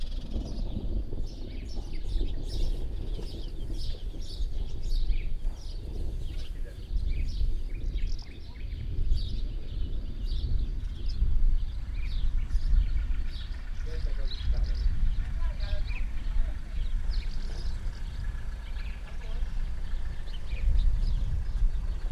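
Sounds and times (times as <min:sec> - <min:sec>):
very distant thunder rumbling: 0:00.2 - 0:22.1.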